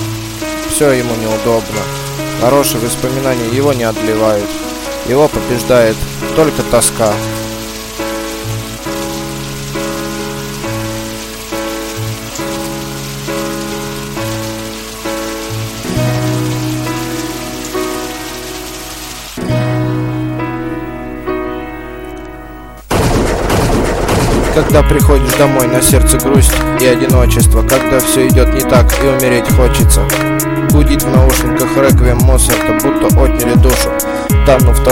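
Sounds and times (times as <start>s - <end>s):
rain pattering on a surface: 0.0s - 20.2s, 21.3s - 34.9s
slow melodic music: 0.0s - 34.9s
speech: 0.8s - 7.4s, 24.6s - 34.9s
rushing noise: 22.9s - 25.7s.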